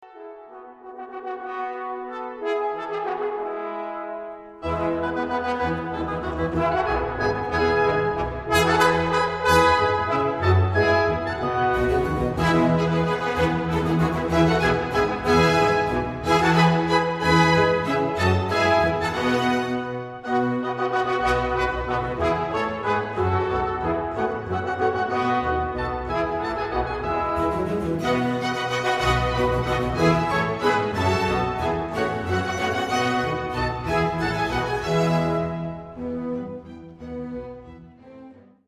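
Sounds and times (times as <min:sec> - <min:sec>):
horn playing a minuet: 0:00.1 - 0:36.2.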